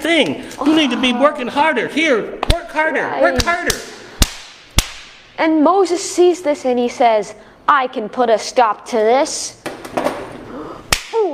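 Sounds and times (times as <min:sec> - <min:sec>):
speech: 0:00.0 - 0:03.9, 0:05.4 - 0:10.0
punch impacts: 0:04.2 - 0:05.3.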